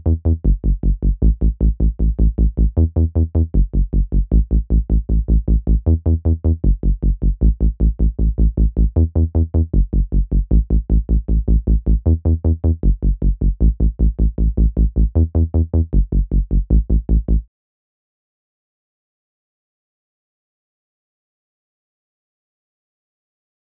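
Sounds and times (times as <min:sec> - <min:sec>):
synth bass: 0:00.0 - 0:17.5.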